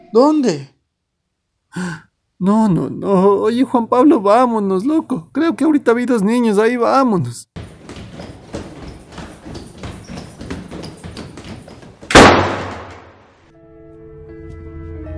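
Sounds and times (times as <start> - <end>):
speech: 0.1 - 0.8, 1.7 - 7.5
doors slamming shut: 12.0 - 13.2.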